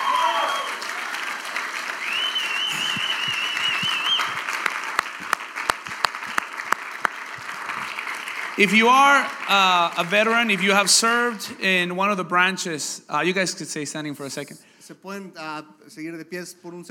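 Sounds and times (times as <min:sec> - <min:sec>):
crowd applauding for veterans: 0:00.0 - 0:11.4
faint whistles: 0:02.0 - 0:04.4
speech: 0:08.6 - 0:16.8.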